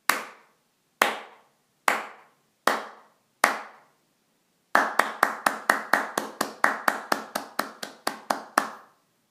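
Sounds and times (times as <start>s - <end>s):
clapping: 0.1s - 0.4s, 1.0s - 3.8s, 4.8s - 8.9s.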